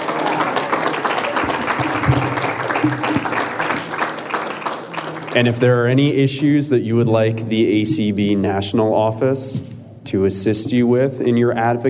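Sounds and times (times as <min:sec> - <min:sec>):
audience applause: 0:00.0 - 0:05.8
speech: 0:02.8 - 0:03.3, 0:05.3 - 0:11.8.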